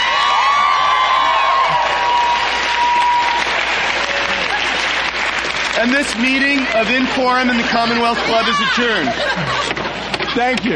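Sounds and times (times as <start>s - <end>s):
whoops and cheers: 0.0s - 4.6s
large audience applause: 0.0s - 9.9s
laughter: 4.1s - 5.1s, 5.8s - 10.7s
speech: 5.8s - 10.7s.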